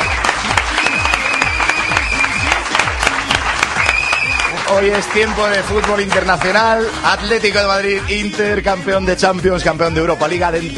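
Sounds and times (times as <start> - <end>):
applause: 0.0 - 8.2
speech: 4.7 - 10.7.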